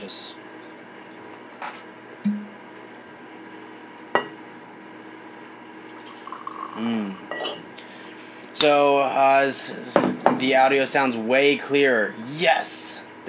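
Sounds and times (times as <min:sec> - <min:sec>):
glass clink: 0:02.3 - 0:02.6, 0:04.2 - 0:04.4, 0:06.0 - 0:07.6
bourbon being poured into a glass: 0:05.5 - 0:07.6
speech: 0:08.6 - 0:13.2.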